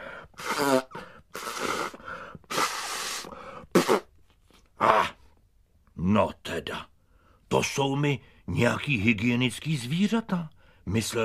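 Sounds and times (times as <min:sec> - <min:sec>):
loud nose blowing: 0:00.0 - 0:04.2
speech: 0:07.5 - 0:11.2.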